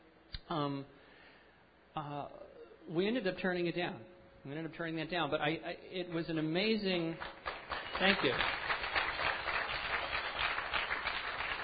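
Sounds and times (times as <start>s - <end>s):
speech: 0.5s - 1.0s, 2.0s - 7.4s, 8.0s - 8.6s
audience clapping: 7.2s - 11.6s.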